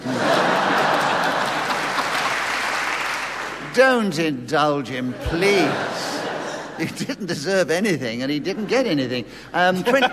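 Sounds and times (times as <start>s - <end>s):
laughter: 0.0s - 2.6s, 4.8s - 10.1s
audience clapping: 0.1s - 4.2s
speech: 3.8s - 5.9s, 6.8s - 10.1s.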